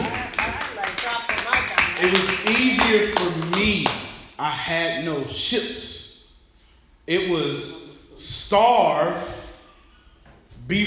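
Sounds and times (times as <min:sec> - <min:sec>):
audience clapping: 0:00.0 - 0:04.1
speech: 0:02.0 - 0:06.0, 0:07.1 - 0:09.4, 0:10.7 - 0:10.8.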